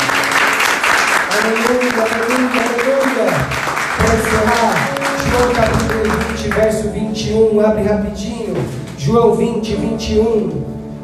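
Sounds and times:
audience applause: 0.0 - 6.7
speech: 6.5 - 10.8.

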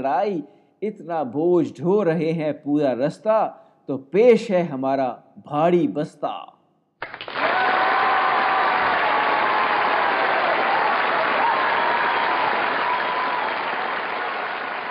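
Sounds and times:
speech: 0.0 - 6.6
auditorium audience applause: 7.0 - 14.8.

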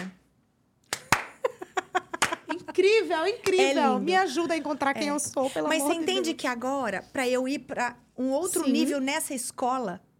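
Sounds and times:
slow hand clapping: 0.8 - 2.6
speech: 2.8 - 10.1.

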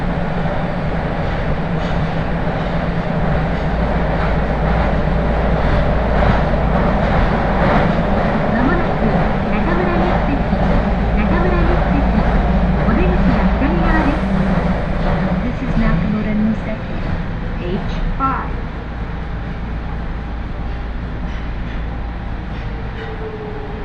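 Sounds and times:
train rumbling on the Aonami and Higashiyama railway lines: 0.0 - 23.8
voices murmuring on a train ride: 8.4 - 14.3, 15.1 - 18.6.

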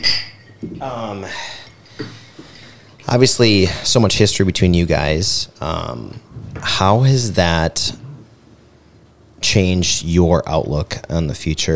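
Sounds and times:
glasses clinking in a toast: 0.0 - 0.8
speech: 0.8 - 2.2, 3.1 - 8.0, 9.4 - 11.7.

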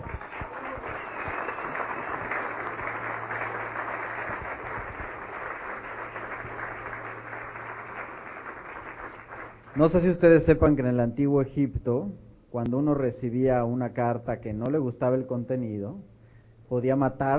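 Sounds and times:
audience applause: 0.0 - 10.0
speech: 9.8 - 16.1, 16.7 - 17.3.

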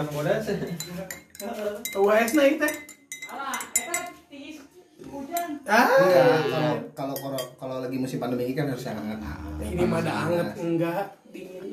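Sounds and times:
spoon stirring coffee in a cup: 0.0 - 4.3
speech: 0.0 - 4.4, 5.0 - 11.7.

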